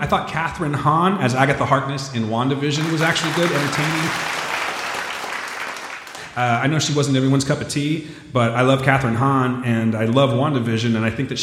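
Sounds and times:
speech: 0.0s - 4.4s, 6.4s - 11.4s
applause sound effect: 2.6s - 6.4s.

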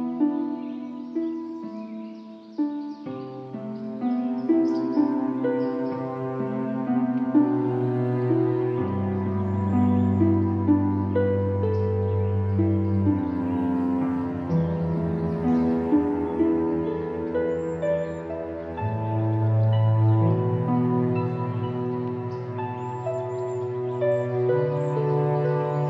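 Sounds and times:
calm music of sustained chords: 0.0s - 25.8s.

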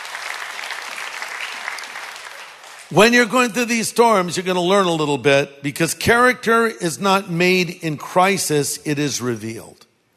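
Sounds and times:
congregation applauding: 0.0s - 3.4s
speech: 2.9s - 9.9s.

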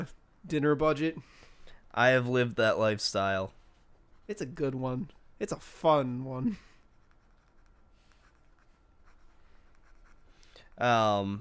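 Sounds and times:
speech: 0.0s - 3.6s, 4.3s - 6.7s, 10.8s - 11.3s
pen writing on paper: 6.8s - 10.3s.

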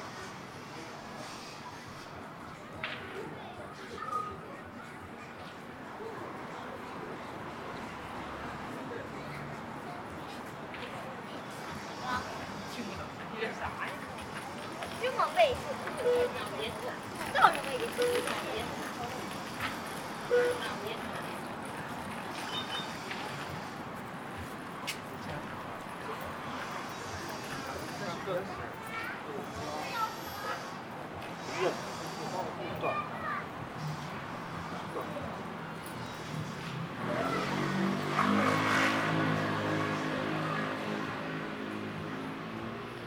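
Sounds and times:
crowd murmur at Ditan in Beijing: 0.0s - 43.0s
scattered voices at Ditan in Beijing: 0.0s - 43.0s
traffic noise at Ditan in Beijing: 0.0s - 43.0s.

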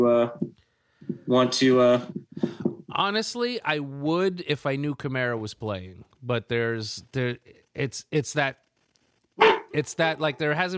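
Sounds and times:
speech: 0.0s - 0.6s, 1.3s - 8.6s, 9.4s - 10.7s
dog barking: 9.4s - 9.8s.

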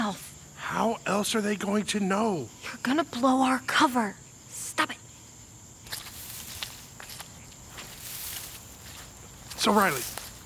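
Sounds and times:
quiet hiss: 0.0s - 10.4s
speech: 0.1s - 4.2s, 9.6s - 10.2s
footsteps walking through marshy tall grass: 5.9s - 10.4s.

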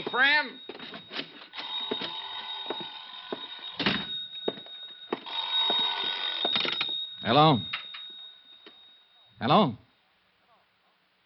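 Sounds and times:
telephone bell ringing: 0.0s - 9.4s
speech: 0.1s - 1.0s, 7.2s - 7.8s, 9.4s - 9.8s.

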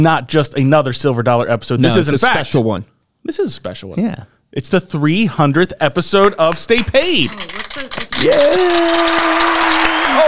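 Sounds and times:
speech: 0.0s - 10.2s
applause sound effect from soundboard: 8.2s - 10.2s.

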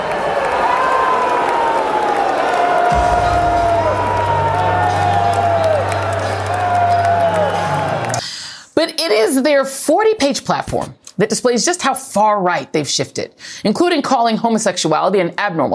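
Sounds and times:
crowd booing: 0.0s - 8.2s
speech: 9.1s - 15.7s.

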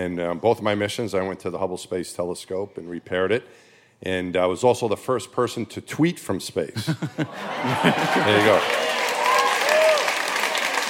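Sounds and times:
speech: 0.0s - 9.0s
laughter: 6.8s - 8.8s
audience applause: 7.4s - 10.8s.

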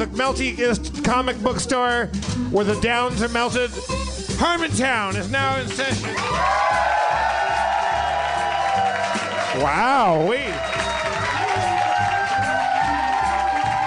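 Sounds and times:
speech: 0.0s - 6.9s, 9.6s - 10.7s
live audience cheering: 6.0s - 13.8s.

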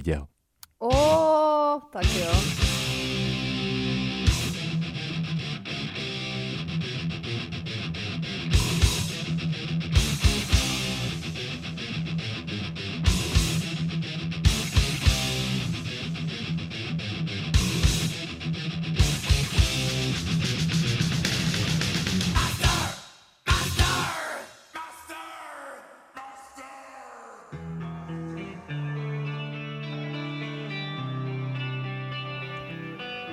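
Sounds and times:
speech: 0.0s - 2.8s
heavy metal distorted guitars: 2.0s - 24.5s, 27.6s - 33.3s
heavy metal shouted vocals: 22.4s - 27.6s.

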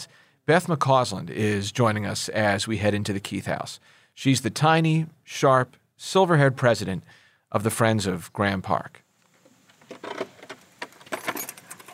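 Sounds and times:
speech: 0.0s - 9.0s
large brass skeleton key opening back door: 10.1s - 11.9s.

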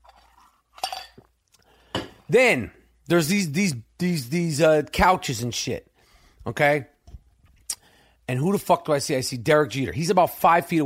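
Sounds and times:
drinking glass clinking: 0.0s - 1.3s, 1.9s - 2.2s
person sipping water: 0.1s - 1.9s
speech: 2.3s - 6.9s, 8.3s - 10.8s.

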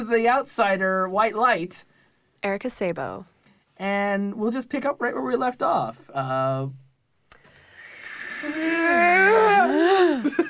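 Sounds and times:
speech: 0.0s - 6.8s, 8.4s - 10.4s
several people screaming: 8.4s - 10.1s.

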